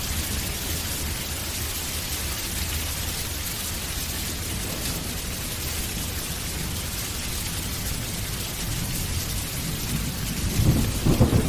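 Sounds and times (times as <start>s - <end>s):
heavy torrential rain: 0.0s - 11.4s
deep rolling thunder: 9.7s - 11.4s.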